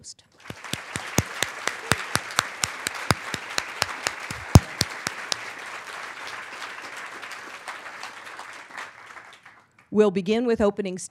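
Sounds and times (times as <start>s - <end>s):
speech: 0.0s - 0.4s, 10.0s - 11.0s
low wash of crowd noise: 0.4s - 9.3s
audience applause welcoming candidates at an Ohio Attorney General debate: 0.4s - 9.7s.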